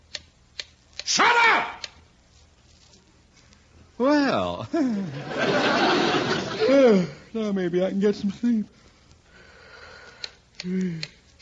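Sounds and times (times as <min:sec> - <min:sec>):
clock ticking in a bedroom: 0:00.0 - 0:01.1, 0:10.2 - 0:11.3
speech: 0:04.0 - 0:08.9, 0:10.6 - 0:11.2
laughter: 0:04.6 - 0:07.2.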